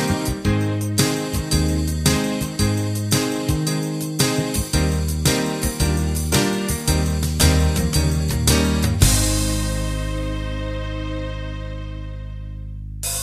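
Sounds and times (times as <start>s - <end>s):
70s radio pop music: 0.0s - 11.2s.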